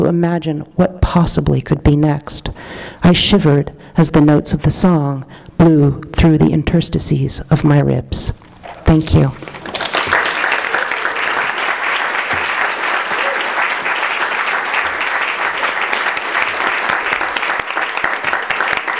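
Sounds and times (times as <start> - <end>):
speech: 0.0 - 9.6
audience applause: 9.4 - 18.9.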